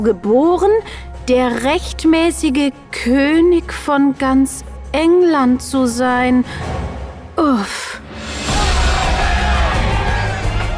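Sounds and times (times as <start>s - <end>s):
speech: 0.0s - 6.8s, 7.4s - 7.9s
crowd cheering and yelling in excitement: 8.4s - 10.7s.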